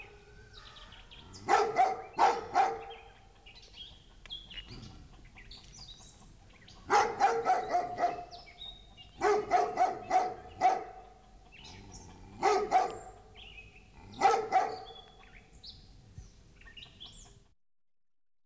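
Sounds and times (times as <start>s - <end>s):
dog barking: 1.3s - 3.3s, 6.8s - 15.1s.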